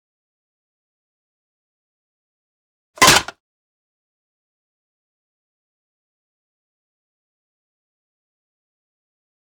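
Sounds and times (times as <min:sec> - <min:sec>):
bullet impacts on metal: 0:03.0 - 0:03.3.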